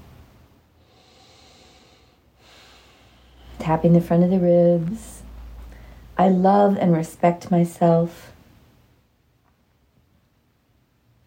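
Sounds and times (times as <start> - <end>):
big deep breath during an anxiety-relief tapping exercise: 0.8 - 3.6, 5.2 - 6.2
speech: 3.7 - 5.1, 6.2 - 8.3.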